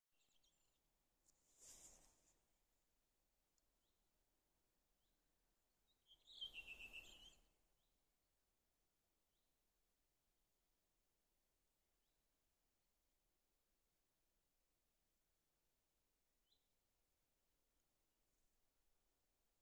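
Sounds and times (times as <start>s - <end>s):
redwing song: 5.9s - 8.0s.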